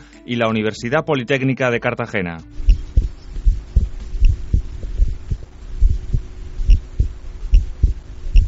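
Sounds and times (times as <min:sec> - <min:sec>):
speech: 0:00.2 - 0:02.6
faint electronic hum: 0:02.5 - 0:08.4
heartbeat of a mountaineer transmitted live: 0:02.6 - 0:08.4.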